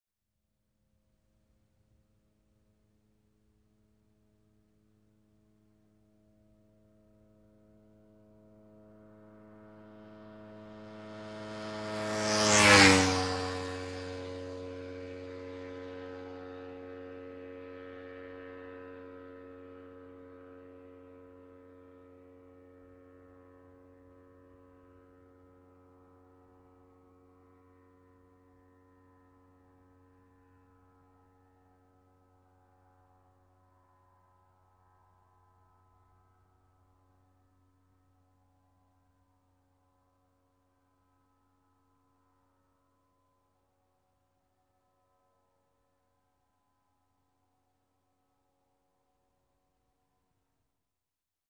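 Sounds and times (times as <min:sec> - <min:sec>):
motorcycle passing by quickly: 0:08.6 - 0:20.5.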